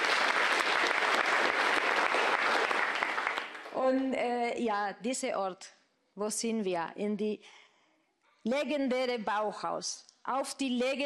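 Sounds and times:
audience applause: 0.0s - 3.7s
speech: 3.9s - 7.6s, 8.4s - 11.0s.

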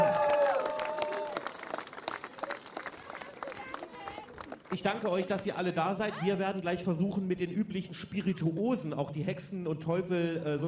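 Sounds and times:
outdoor festival crowd applause: 0.0s - 5.7s
speech: 4.8s - 10.6s.

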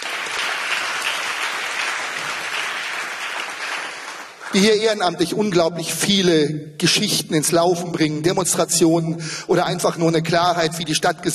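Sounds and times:
crowd clapping: 0.0s - 4.9s
speech: 4.5s - 11.3s.

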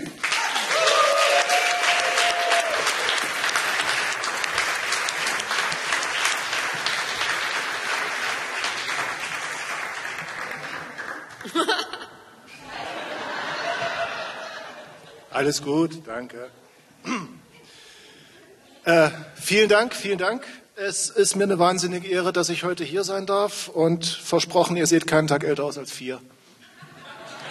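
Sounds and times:
audience applause: 0.0s - 12.0s
laughter: 10.8s - 15.4s, 26.6s - 27.5s
speech: 15.4s - 17.2s, 18.9s - 26.4s.

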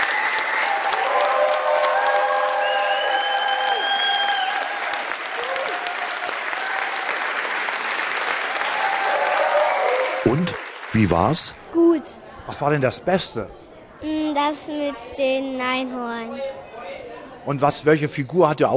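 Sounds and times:
audience applause after a children's play: 0.0s - 11.5s
speech: 11.0s - 16.7s, 17.4s - 18.7s.

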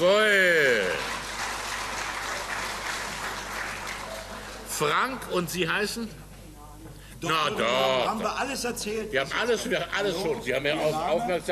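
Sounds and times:
speech: 0.0s - 0.5s, 4.8s - 6.2s, 7.2s - 11.4s
audience applause: 0.1s - 5.0s.

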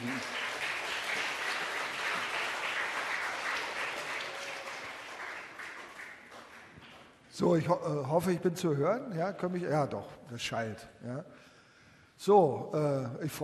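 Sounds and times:
audience applause: 0.0s - 7.2s
speech: 7.4s - 11.5s, 12.2s - 13.4s.

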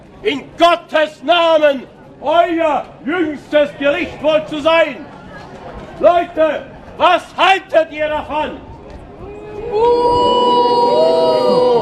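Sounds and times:
speech: 0.2s - 5.1s, 6.0s - 8.7s, 9.7s - 10.4s
crowd booing: 9.3s - 11.8s.

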